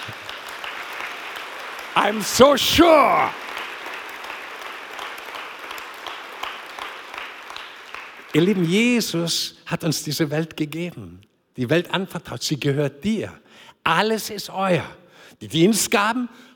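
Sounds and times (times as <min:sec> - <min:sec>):
audience applause: 0:00.0 - 0:08.5
speech: 0:02.0 - 0:03.4, 0:08.4 - 0:16.5.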